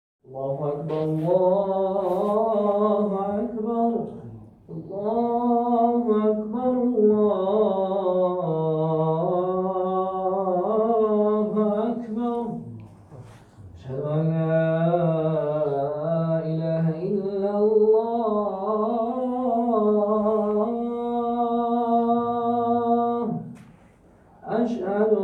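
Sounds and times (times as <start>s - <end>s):
solo Islamic call to prayer: 0.3s - 23.8s, 24.4s - 25.2s.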